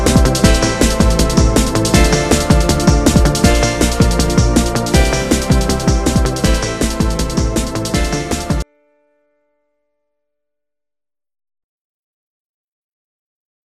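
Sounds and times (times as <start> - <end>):
instrumental club mix: 0.0 - 8.6.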